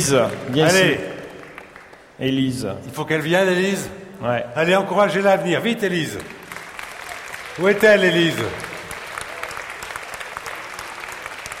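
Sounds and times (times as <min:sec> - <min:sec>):
speech: 0:00.0 - 0:01.2, 0:02.2 - 0:06.4, 0:07.6 - 0:08.7
audience applause: 0:00.0 - 0:02.2, 0:06.1 - 0:11.5.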